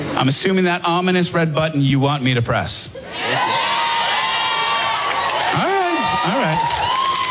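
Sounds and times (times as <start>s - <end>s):
speech: 0.2s - 3.5s
live studio audience cheering: 3.1s - 7.2s
people shouting and whooping: 3.1s - 7.2s.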